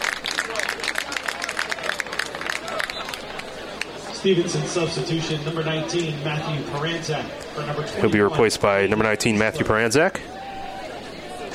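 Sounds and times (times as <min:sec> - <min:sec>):
soccer crowd applauding a substituted player: 0:00.0 - 0:04.2
soccer crowd murmur: 0:00.0 - 0:11.5
commentator speaking: 0:04.1 - 0:10.2
speech: 0:04.2 - 0:10.3.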